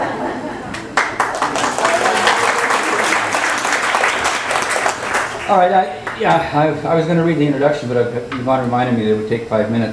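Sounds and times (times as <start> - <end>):
audience applause: 0.7 - 6.2
speech: 5.5 - 9.9.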